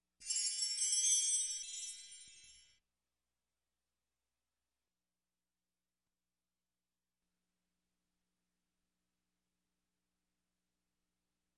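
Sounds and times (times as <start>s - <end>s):
chime: 0.2s - 2.8s.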